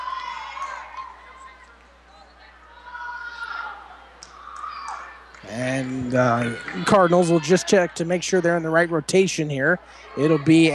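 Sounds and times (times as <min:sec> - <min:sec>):
fans cheering: 0:00.0 - 0:10.7
crowd of fans applauding in a large indoor gym: 0:04.5 - 0:08.6
speech: 0:05.5 - 0:10.7.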